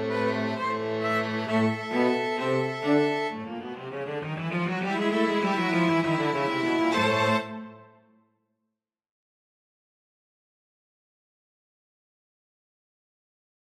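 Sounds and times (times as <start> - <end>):
string quartet: 0.0 - 7.9.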